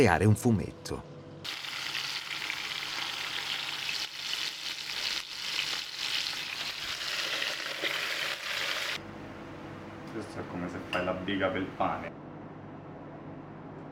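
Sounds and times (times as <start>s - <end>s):
speech: 0.0s - 1.6s, 11.3s - 12.2s
soffritto frying in a pan: 1.4s - 9.0s.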